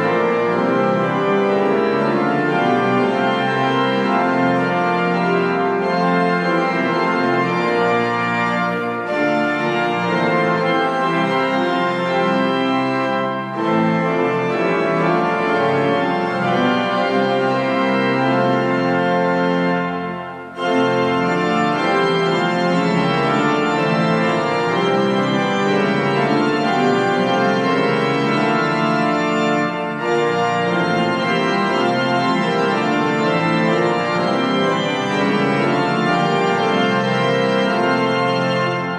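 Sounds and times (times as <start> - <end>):
pipe organ: 0.0 - 38.9.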